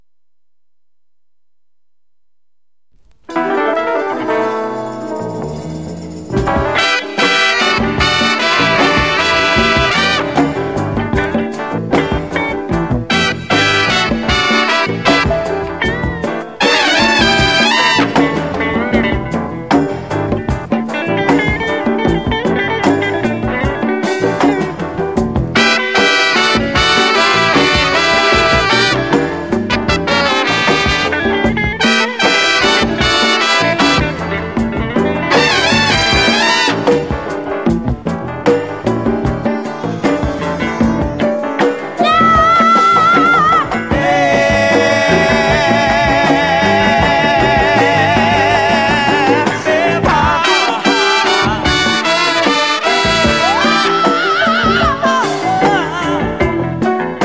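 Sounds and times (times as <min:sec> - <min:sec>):
funk music: 0:03.0 - 0:57.2.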